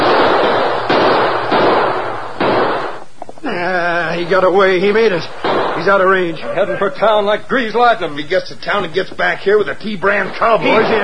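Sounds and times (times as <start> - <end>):
gunshots: 0.0 - 3.3, 4.1 - 6.9, 10.1 - 11.0
speech: 3.6 - 11.0
laughter: 5.8 - 9.0, 10.5 - 11.0.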